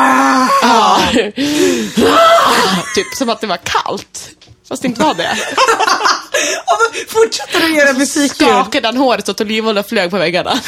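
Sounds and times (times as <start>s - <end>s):
man vocally imitating a man screaming like an animal: 0.0s - 2.9s
speech: 1.2s - 2.2s, 2.8s - 10.6s
laughter: 5.0s - 6.6s.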